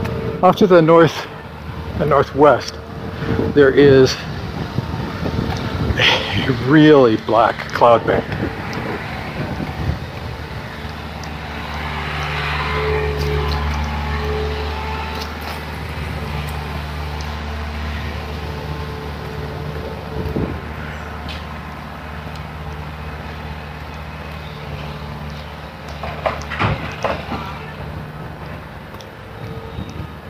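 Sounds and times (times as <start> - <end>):
wind blowing into the microphone: 0.0 - 24.2, 26.4 - 30.2
speech: 0.4 - 1.3, 2.0 - 4.3, 6.0 - 8.6.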